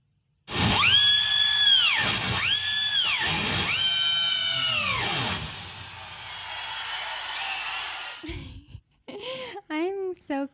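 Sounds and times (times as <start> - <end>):
weird-sounding electric guitar: 0.5 - 6.6
cheering: 0.7 - 8.2
speech: 10.3 - 10.5.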